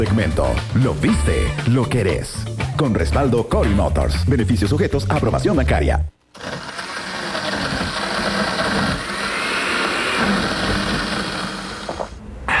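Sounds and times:
speech: 0.0 - 6.6
blender mixing frozen cappuccino: 6.3 - 12.2.

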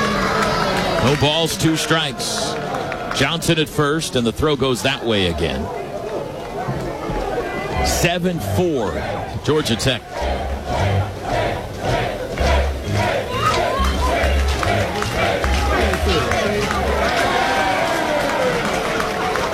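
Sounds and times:
large baseball crowd roaring and chanting: 0.0 - 19.5
speech: 1.0 - 2.6, 3.2 - 5.8, 7.8 - 10.2
steady pulsing beat: 7.8 - 17.1.

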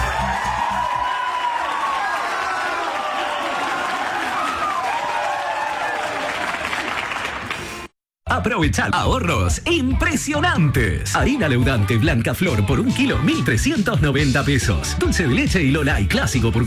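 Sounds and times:
crowd applause: 0.0 - 7.9
speech: 8.4 - 16.6.

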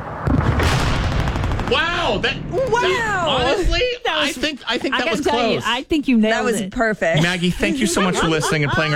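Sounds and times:
World War II battle barrage with booms: 0.2 - 2.0
World War II battle machine-gun bursts: 1.0 - 1.9
speech: 1.7 - 8.9
laughter: 7.1 - 8.9.

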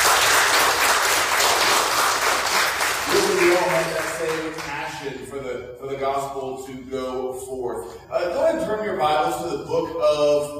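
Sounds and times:
audience applause: 0.0 - 4.8
speech: 3.5 - 10.5.

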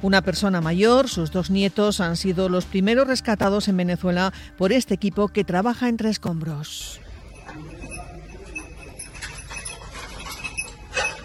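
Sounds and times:
speech: 0.0 - 7.0
search dog jingling under rubble: 7.3 - 11.2.

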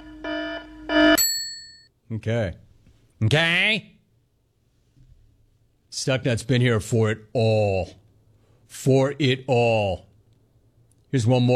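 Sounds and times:
Smack Chat alarm going off: 0.0 - 1.4
speech: 2.1 - 2.6, 3.2 - 4.0, 5.9 - 8.0, 8.7 - 10.1, 11.1 - 11.5.

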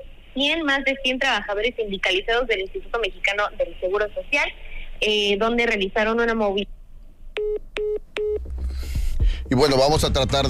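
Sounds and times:
speech: 0.4 - 6.8, 7.4 - 10.4
electronic telephone beeps while a dropped call is redialed: 7.4 - 8.5.

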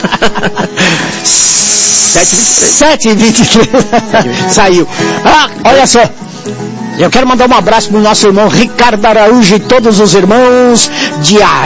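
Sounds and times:
laughter: 0.0 - 1.2, 3.2 - 4.8
speech: 0.1 - 11.6
kettle hissing steam: 1.1 - 2.8.

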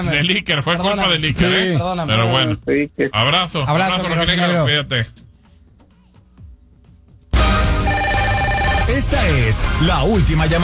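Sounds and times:
speech: 0.0 - 5.2, 8.9 - 10.6
answering machine beep: 7.8 - 8.9.

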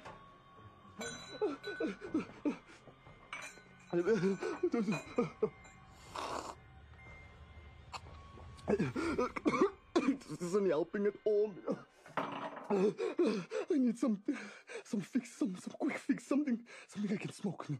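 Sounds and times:
speech: 1.0 - 3.0, 3.9 - 5.7, 8.7 - 11.9, 12.7 - 17.7
glass clinking while getting water: 1.0 - 5.9.

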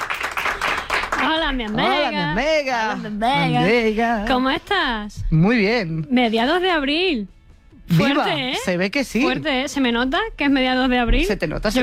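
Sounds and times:
audience applause: 0.0 - 2.0
speech: 1.3 - 11.8.

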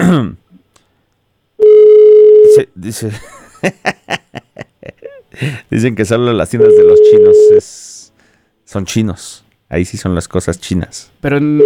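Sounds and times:
speech: 0.1 - 0.4, 2.5 - 4.2, 5.4 - 7.9, 8.7 - 11.6
telephone ringing on an outgoing call: 1.6 - 2.6, 6.6 - 7.6
laughter: 3.1 - 5.2.

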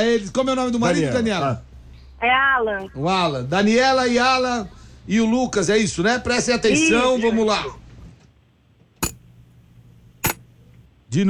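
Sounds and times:
speech: 0.0 - 7.8
low hum: 0.0 - 11.2
glass food container lid latches clicking shut: 9.0 - 9.2, 10.2 - 10.4.

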